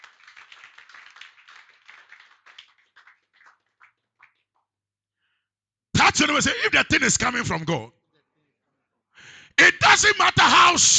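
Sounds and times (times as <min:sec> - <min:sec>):
audience clapping: 0:00.0 - 0:04.8
speech: 0:06.2 - 0:08.0, 0:10.0 - 0:10.9.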